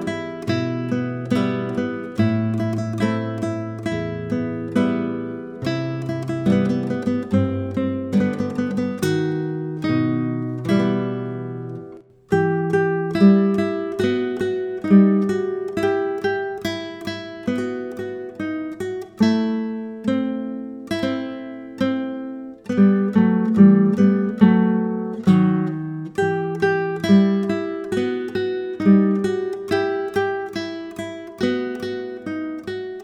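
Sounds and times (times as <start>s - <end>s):
easy classical guitar duet in Russian style: 0.0s - 33.0s.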